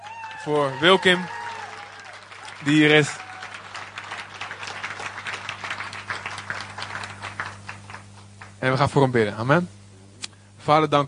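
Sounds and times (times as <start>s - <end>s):
church congregation applauding a guest: 0.0s - 8.8s
low electrical hum: 0.0s - 11.0s
speech: 0.4s - 1.4s, 2.6s - 3.2s, 8.6s - 9.8s, 10.6s - 11.0s.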